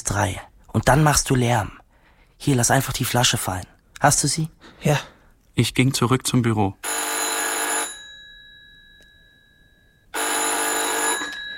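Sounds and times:
speech: 0:00.1 - 0:01.8, 0:02.4 - 0:07.0
telephone bell ringing: 0:06.8 - 0:11.5.

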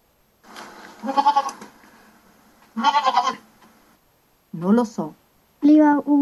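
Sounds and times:
goat bleating: 0:00.9 - 0:01.7, 0:02.7 - 0:03.5
speech: 0:01.0 - 0:01.5, 0:04.7 - 0:06.1.

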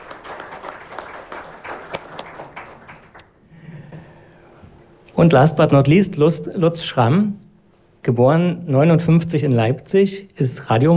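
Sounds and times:
audience applause: 0:00.0 - 0:03.2
speech: 0:05.2 - 0:07.4, 0:08.0 - 0:10.9.

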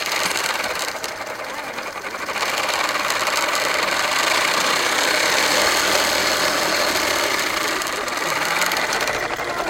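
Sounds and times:
bicycle-powered smoothie blender whirring: 0:00.0 - 0:09.6.

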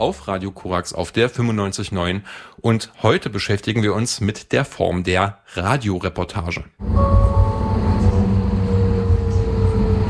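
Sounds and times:
speech: 0:00.0 - 0:07.2
tram passing on rails: 0:06.8 - 0:10.0.

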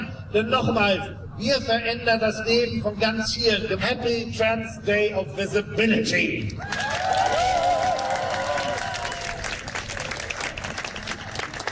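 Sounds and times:
speech: 0:00.3 - 0:07.2
audience applause: 0:06.7 - 0:11.6.

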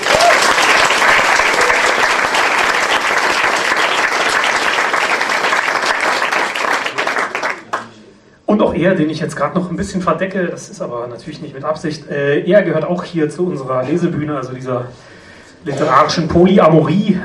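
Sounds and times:
audience applause: 0:00.0 - 0:07.8
speech: 0:08.6 - 0:17.2.

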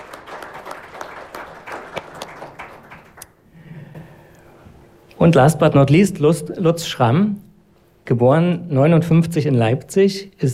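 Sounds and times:
audience applause: 0:00.0 - 0:03.4
speech: 0:05.2 - 0:07.4, 0:08.1 - 0:10.5.

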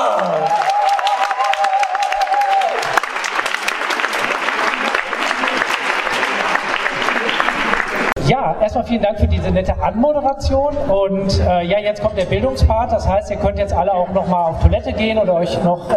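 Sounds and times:
audience applause: 0:00.0 - 0:08.2
speech: 0:08.7 - 0:15.9.

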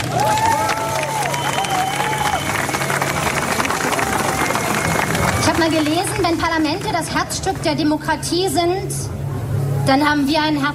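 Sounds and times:
faint cheers: 0:00.0 - 0:05.8
crowd applauding: 0:00.0 - 0:07.1
whistles: 0:01.2 - 0:02.9
speech: 0:05.6 - 0:09.2, 0:09.8 - 0:10.7.

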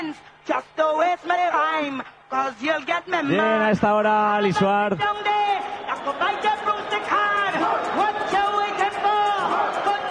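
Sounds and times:
speech: 0:00.1 - 0:08.6
concert audience shouting: 0:03.3 - 0:10.0.

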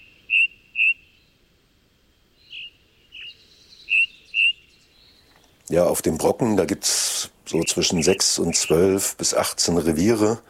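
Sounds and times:
ring ouzel singing on the Brocken: 0:00.0 - 0:01.4, 0:02.4 - 0:05.6, 0:07.5 - 0:08.9
speech: 0:05.7 - 0:10.4.

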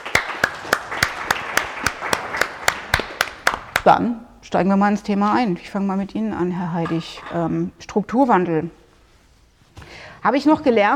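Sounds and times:
rhythmic clapping: 0:00.0 - 0:04.1
speech: 0:03.8 - 0:08.8, 0:10.2 - 0:10.9.

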